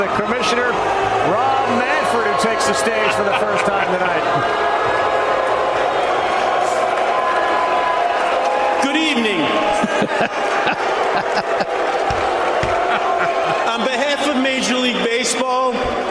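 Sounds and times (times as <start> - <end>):
stadium crowd cheering: 0.0 - 16.0
laughter: 2.0 - 4.8, 9.4 - 14.4
speech: 2.6 - 4.9, 10.0 - 11.6, 13.8 - 16.0.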